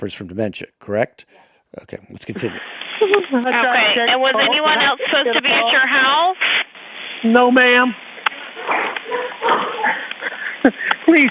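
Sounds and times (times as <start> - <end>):
speech: 0.0 - 6.6, 7.2 - 8.0, 10.6 - 11.2
dogs barking during a 911 emergency telephone call: 8.3 - 10.2.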